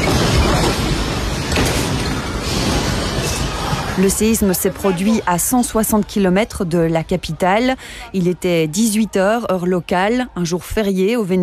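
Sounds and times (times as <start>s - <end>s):
part of a ceiling collapsing with crash: 0.0s - 5.0s
speech: 4.0s - 11.4s.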